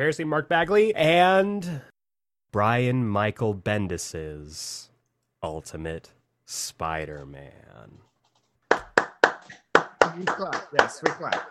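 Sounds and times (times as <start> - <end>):
speech: 0.0 - 1.9, 2.5 - 8.1, 10.2 - 11.4
hands clapping: 8.6 - 11.4.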